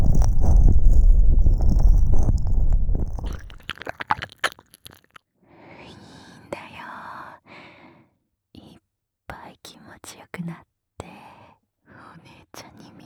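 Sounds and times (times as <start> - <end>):
ASMR ear licking in both ears: 0.0 - 5.2.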